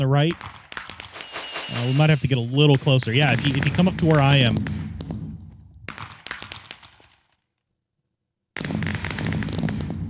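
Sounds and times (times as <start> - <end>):
speech: 0.0 - 0.6, 1.7 - 4.8
fireworks exploding in the Minecraft video game: 0.3 - 7.2, 8.6 - 10.0.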